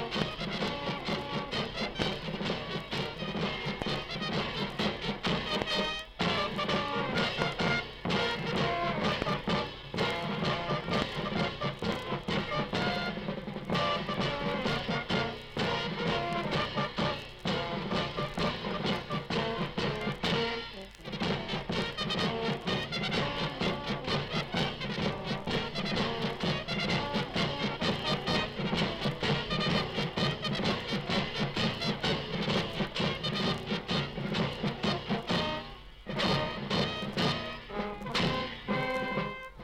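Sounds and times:
provincial brass band music: 0:00.0 - 0:39.6.

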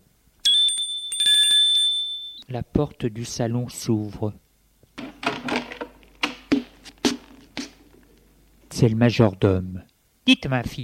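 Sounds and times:
small hand bell ringing: 0:00.4 - 0:02.4
speech: 0:02.5 - 0:04.4, 0:08.8 - 0:10.8.

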